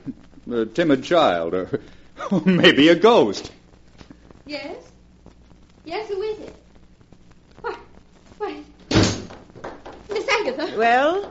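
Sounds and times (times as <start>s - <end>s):
speech: 0.1s - 3.6s, 4.5s - 4.8s, 10.4s - 11.2s
door slamming shut: 8.8s - 9.4s.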